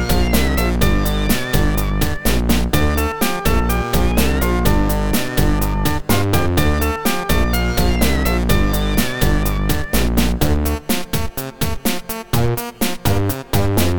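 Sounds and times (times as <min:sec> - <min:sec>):
background music: 0:00.0 - 0:13.9.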